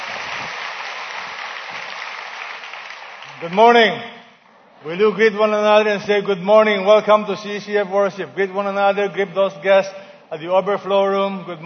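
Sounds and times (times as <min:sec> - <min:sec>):
church congregation clapping as a clap offering during a worship service: 0:00.0 - 0:04.3
speech: 0:03.4 - 0:04.2, 0:04.8 - 0:11.6.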